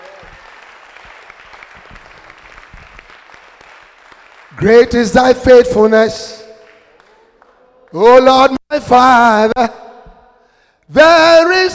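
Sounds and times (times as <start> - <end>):
audience clapping hands: 0.0 - 5.1, 6.6 - 8.0
speech: 4.6 - 6.4, 7.9 - 9.8, 10.9 - 11.7.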